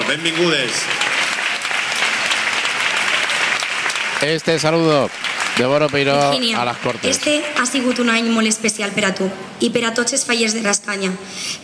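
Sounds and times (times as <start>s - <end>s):
audience applause: 0.0s - 8.3s
speech: 0.1s - 1.0s, 4.2s - 11.6s.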